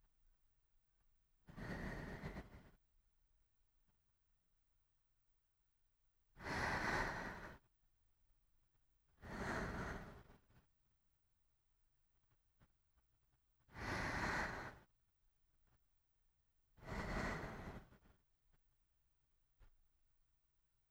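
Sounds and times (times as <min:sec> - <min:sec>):
sleeping breath: 0:01.5 - 0:02.8, 0:06.4 - 0:07.7, 0:09.2 - 0:10.6, 0:13.7 - 0:14.9, 0:16.8 - 0:18.2.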